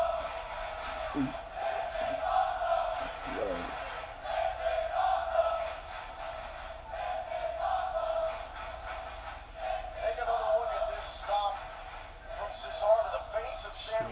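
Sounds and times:
large wrestling crowd roaring and cheering: 0.0 - 13.1
scattered shouts from the crowd: 0.9 - 1.5, 2.4 - 4.0.

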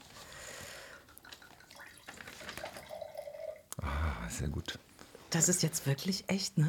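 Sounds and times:
wine being poured into a glass: 0.9 - 3.7
speech: 4.4 - 6.6.

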